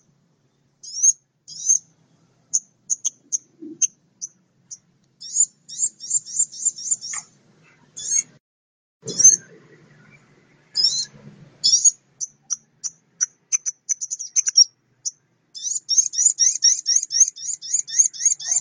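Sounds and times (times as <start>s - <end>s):
mixed birds singing high, thin repeated notes: 0.4s - 7.3s, 9.1s - 18.5s.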